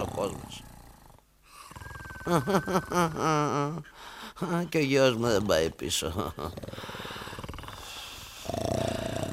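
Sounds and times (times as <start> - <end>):
snoring: 0.0 - 2.4, 6.4 - 9.3
speech: 2.3 - 6.9.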